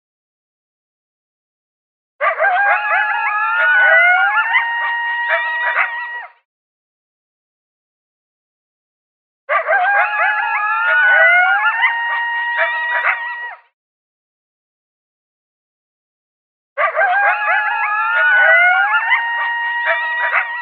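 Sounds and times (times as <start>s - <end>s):
coyotes howling and yipping: 2.2s - 6.4s, 9.5s - 13.6s, 16.8s - 20.6s.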